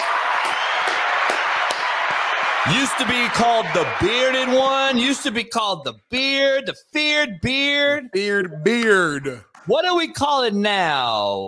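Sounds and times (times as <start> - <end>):
many hands clapping: 0.0 - 5.2
speech: 2.6 - 11.4.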